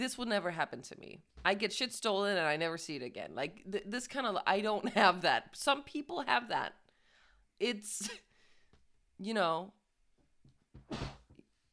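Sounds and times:
speech: 0:00.0 - 0:06.8, 0:07.6 - 0:08.3, 0:09.2 - 0:09.8, 0:10.9 - 0:11.2
person sneezing into a sleeve: 0:10.9 - 0:11.3.

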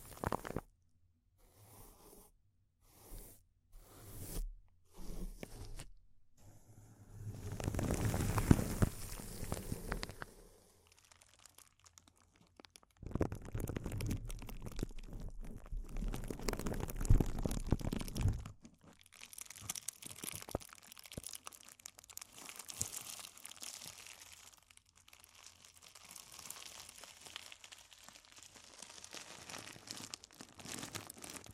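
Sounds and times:
plastic or foil crinkling: 0:00.0 - 0:00.6, 0:07.4 - 0:31.5.

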